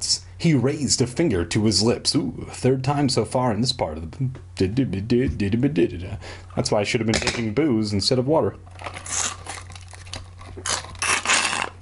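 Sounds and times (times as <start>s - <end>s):
low steady hum: 0.0s - 11.8s
speech: 0.4s - 9.2s
paper crinkling from a drinking straw with a little paper umbrella: 8.7s - 11.8s.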